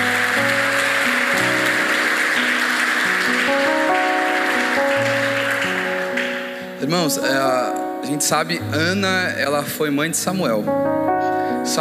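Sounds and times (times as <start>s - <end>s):
audience applause: 0.0s - 6.8s
sustained keyboard chords: 0.0s - 11.7s
speech: 6.9s - 11.7s.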